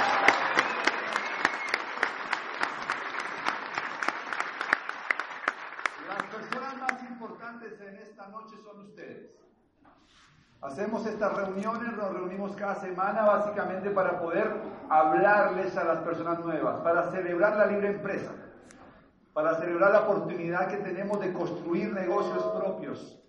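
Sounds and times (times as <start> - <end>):
audience applause: 0.0 - 7.0
speech: 10.8 - 18.4, 19.4 - 23.2.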